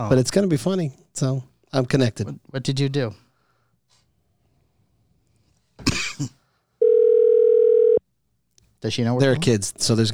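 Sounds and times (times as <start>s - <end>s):
speech: 0.0s - 3.2s, 8.8s - 10.1s
cough or throat-clear: 5.8s - 6.4s
electronic ringback tone from an outgoing phone call: 6.8s - 8.0s.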